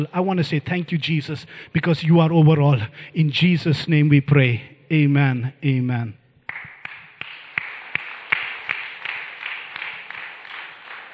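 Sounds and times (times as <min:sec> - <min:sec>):
speech: 0:00.0 - 0:06.2
audience clapping hands in a steady, quick rhythm: 0:06.4 - 0:11.1.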